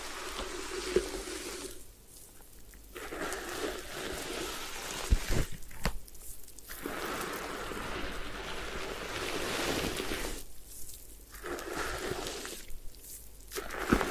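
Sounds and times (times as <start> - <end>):
head spa hair wash: 0.0 - 1.9, 2.9 - 5.5, 6.2 - 10.5, 11.3 - 12.8.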